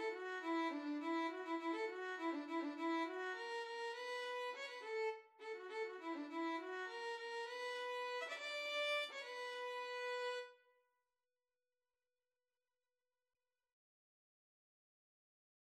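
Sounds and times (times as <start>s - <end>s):
violin arrangement: 0.0s - 10.6s.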